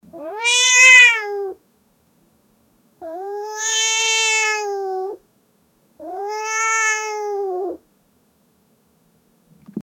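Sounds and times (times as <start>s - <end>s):
cat yowling: 0.1s - 1.6s, 3.0s - 5.2s, 6.0s - 7.8s.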